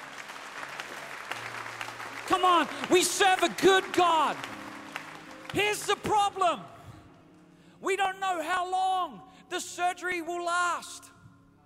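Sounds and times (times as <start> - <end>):
audience clapping hands: 0.0 - 7.4
speech: 2.3 - 4.6, 5.5 - 6.7, 7.8 - 11.1.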